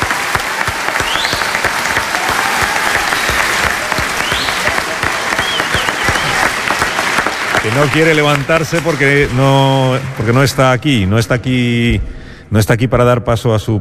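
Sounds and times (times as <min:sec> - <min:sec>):
audience applause: 0:00.0 - 0:11.0
whistles: 0:01.0 - 0:01.7, 0:03.0 - 0:07.1
speech: 0:07.6 - 0:13.7.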